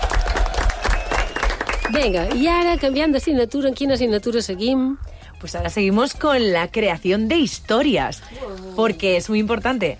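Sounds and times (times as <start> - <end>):
applause: 0.0 - 2.8
speech: 1.9 - 9.9.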